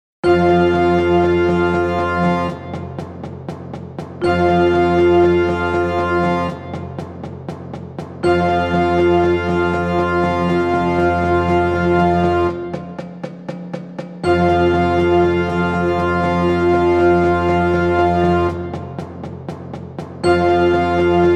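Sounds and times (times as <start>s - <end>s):
band warmups: 0.3s - 21.3s.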